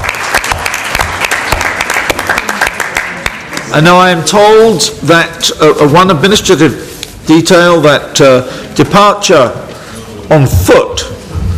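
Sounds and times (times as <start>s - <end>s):
audience applause: 0.0s - 3.6s
speech: 3.7s - 9.6s, 10.3s - 11.2s.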